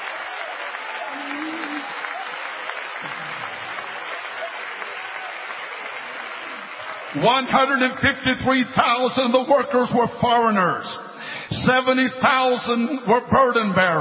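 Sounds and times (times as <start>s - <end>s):
audience clapping hands: 0.0s - 8.4s
speech: 7.1s - 13.9s.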